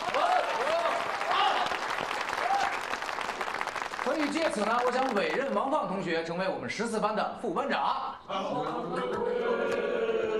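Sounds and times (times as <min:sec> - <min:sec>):
classroom audience applauding: 0:00.0 - 0:05.8
speech: 0:04.1 - 0:09.9.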